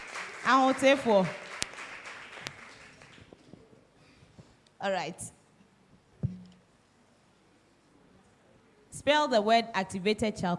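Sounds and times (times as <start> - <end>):
audience clapping: 0.0 - 3.5
speech: 0.4 - 1.4, 4.8 - 5.4, 9.0 - 10.5.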